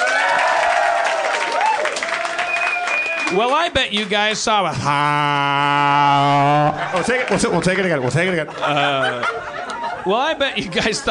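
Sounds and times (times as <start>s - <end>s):
audience applause: 0.0s - 4.3s, 6.8s - 8.0s
speech: 3.3s - 11.0s
laughter: 4.7s - 11.0s.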